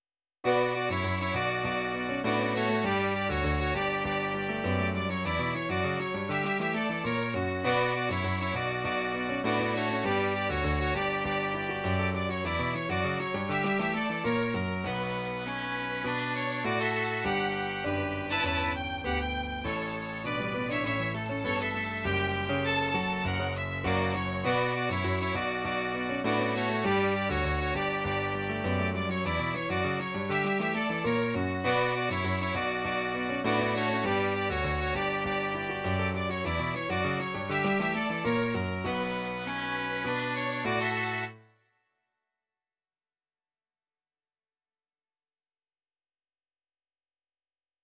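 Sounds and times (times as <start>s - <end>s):
piano: 0.4s - 41.5s
violin: 0.5s - 41.4s.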